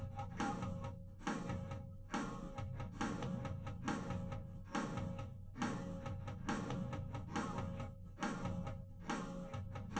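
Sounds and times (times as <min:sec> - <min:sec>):
drums: 0:00.0 - 0:09.9.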